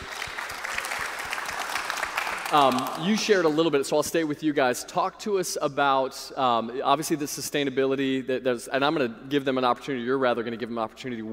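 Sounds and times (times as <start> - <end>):
audience applause: 0.0 - 3.5
speech: 2.5 - 11.3.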